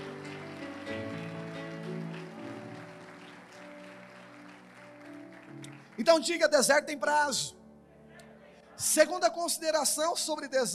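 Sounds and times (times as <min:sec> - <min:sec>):
audience applauding: 0:00.0 - 0:06.4
speech: 0:06.0 - 0:07.6, 0:08.8 - 0:10.7.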